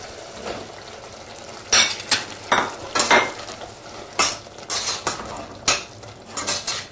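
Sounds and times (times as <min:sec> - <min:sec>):
faint sizzle of simmering sauce: 0:00.0 - 0:06.8
spoon stirring cubed aubergine into spiced turmeric sauce in a pot: 0:04.2 - 0:06.8.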